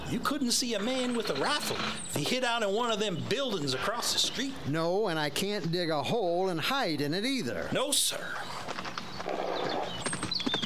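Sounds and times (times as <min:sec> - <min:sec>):
horse ridden at speed down a town street: 0:00.0 - 0:04.4, 0:08.6 - 0:10.6
speech: 0:00.1 - 0:08.5.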